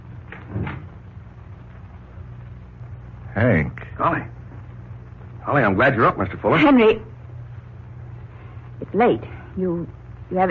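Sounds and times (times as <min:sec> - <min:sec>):
door being opened with a muffled knock and creak: 0:00.3 - 0:00.9
speech: 0:03.4 - 0:04.4, 0:05.5 - 0:07.1, 0:08.9 - 0:10.4.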